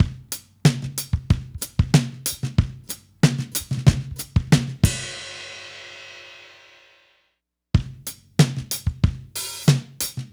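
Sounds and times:
analog funk drum break: 0.0 - 5.7, 7.8 - 10.3.

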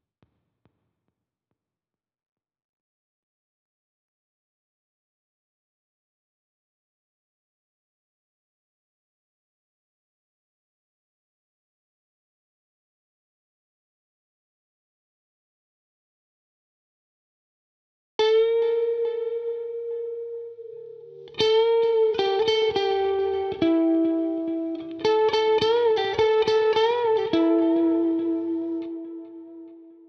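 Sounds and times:
lead guitar in E minor: 18.2 - 30.0.

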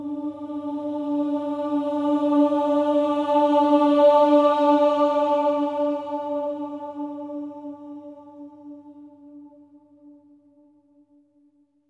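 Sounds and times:
voices singing swelling ohs on D4: 0.0 - 8.0.

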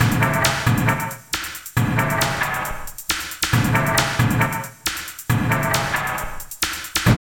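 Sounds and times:
industrial techno music: 0.0 - 7.2.

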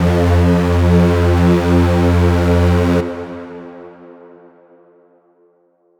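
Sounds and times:
dark lead tone in F: 0.0 - 3.5.

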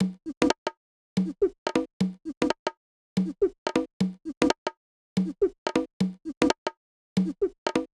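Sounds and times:
percussion loop at 120 bpm: 0.0 - 7.9.

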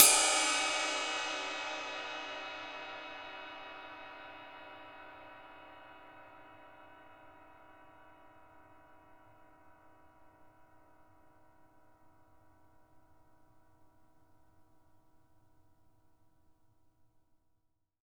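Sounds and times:
ride cymbal: 0.0 - 4.6.

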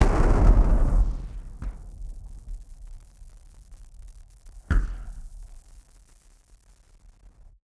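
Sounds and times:
party popper bang: 0.0 - 2.3.

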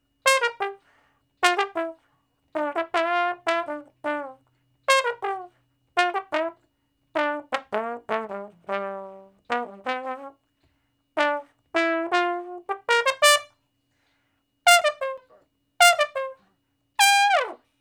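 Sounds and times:
trombone shuffle in G: 0.2 - 0.8, 1.4 - 2.0, 2.6 - 6.6, 7.2 - 10.4, 11.2 - 13.5, 14.7 - 15.2, 15.8 - 16.4, 17.0 - 17.6.

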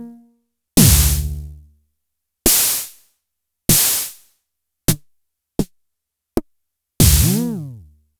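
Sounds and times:
Schlagzwerg snares: 0.8 - 1.3, 7.0 - 7.5.

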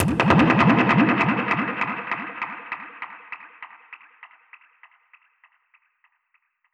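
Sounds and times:
dub percussion hit: 0.0 - 2.6.

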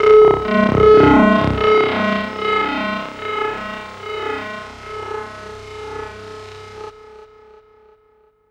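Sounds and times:
drum and bass effect: 0.0 - 3.6.

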